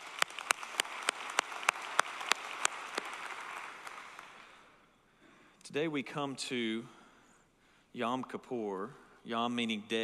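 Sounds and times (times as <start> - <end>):
audience applause in a church service: 0.0 - 4.6
speech: 5.7 - 7.0, 7.9 - 10.0.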